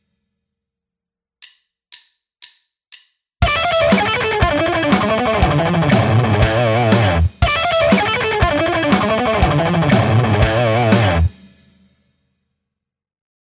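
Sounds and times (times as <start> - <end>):
guitar alternate picking: 3.4 - 11.3.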